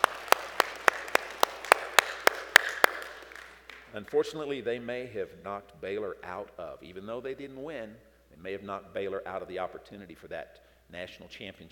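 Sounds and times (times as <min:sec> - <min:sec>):
single person applauding with hand claps: 0:00.0 - 0:04.4
speech: 0:03.9 - 0:11.6.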